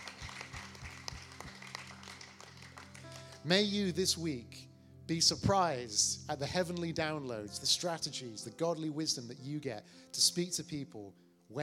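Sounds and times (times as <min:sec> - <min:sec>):
audience clapping: 0:00.0 - 0:03.7
speech: 0:03.4 - 0:11.6.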